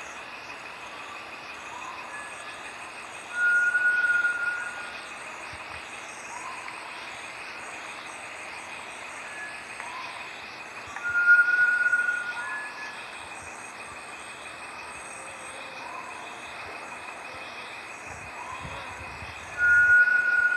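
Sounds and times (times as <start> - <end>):
Bartlett's tinamou calling with long pure whistled notes: 3.4 - 4.8, 11.0 - 12.8, 19.6 - 20.5.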